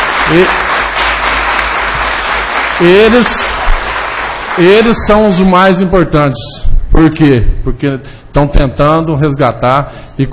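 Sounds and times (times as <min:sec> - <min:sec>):
audience applause: 0:00.0 - 0:05.2
speech: 0:00.3 - 0:00.6, 0:02.8 - 0:03.7, 0:04.6 - 0:10.3.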